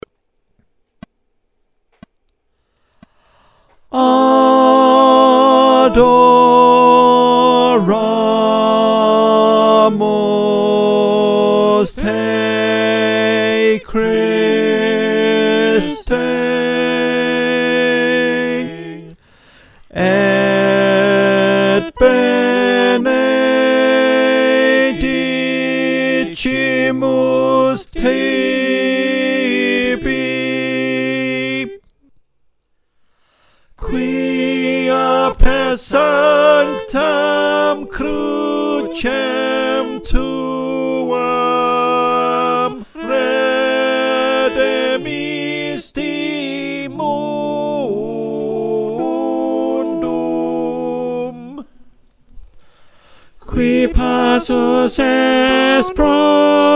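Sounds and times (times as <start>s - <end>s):
tenor singing: 3.9s - 19.2s, 19.9s - 32.1s, 33.8s - 51.9s, 53.4s - 56.7s.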